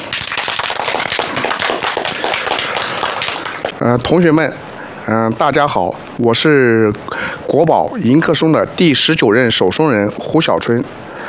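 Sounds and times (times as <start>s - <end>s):
crowd applauding: 0.0s - 3.8s
speech: 3.8s - 11.0s.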